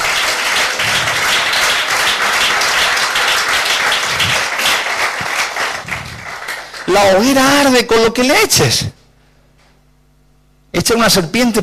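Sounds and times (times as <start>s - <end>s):
audience applauding: 0.0s - 7.4s
speech: 6.9s - 9.0s, 10.8s - 11.6s.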